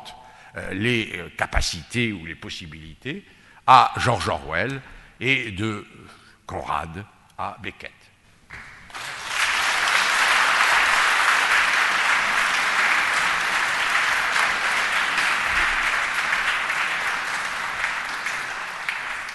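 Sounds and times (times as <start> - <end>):
speech: 0.5 - 8.6
audience applause: 8.8 - 19.3.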